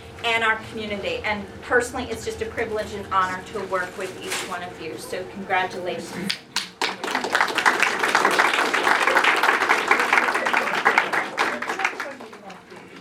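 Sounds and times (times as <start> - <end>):
speech: 0.2 - 6.4
people clapping: 6.3 - 13.0.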